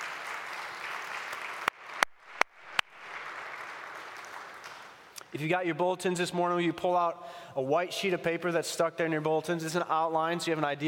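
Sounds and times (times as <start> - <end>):
audience applause: 0.0 - 5.1
speech: 5.3 - 10.8.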